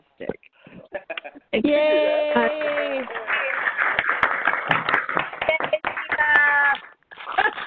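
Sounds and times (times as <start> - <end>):
speech: 0.2 - 0.5, 1.5 - 3.3
applause: 2.3 - 7.6.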